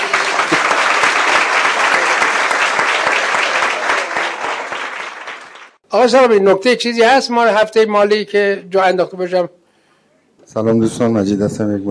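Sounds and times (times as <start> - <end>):
audience applause in honour of the hosts: 0.0 - 5.8
speech: 5.9 - 9.6, 10.5 - 11.8.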